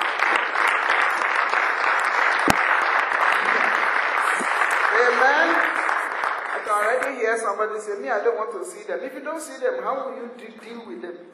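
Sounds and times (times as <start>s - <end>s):
audience clapping: 0.0s - 7.4s
speech: 7.3s - 11.2s.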